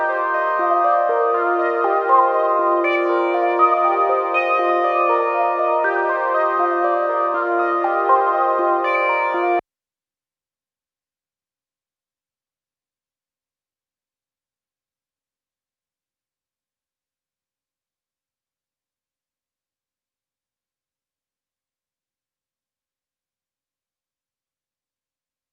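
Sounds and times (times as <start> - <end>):
C minor arpeggio melody loop: 0.0 - 9.6.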